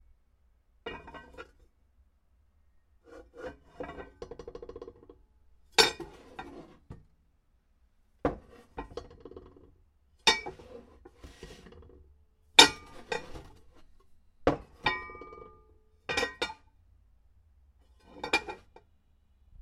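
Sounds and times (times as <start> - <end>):
large aluminium pot being processed: 0.9 - 1.6, 3.2 - 7.1, 8.3 - 12.0, 12.6 - 16.6, 18.0 - 18.8.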